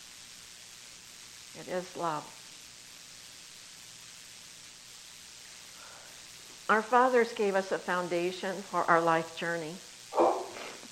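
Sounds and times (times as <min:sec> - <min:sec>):
speech: 0:01.5 - 0:02.4, 0:06.7 - 0:10.2
sneeze: 0:10.1 - 0:10.8.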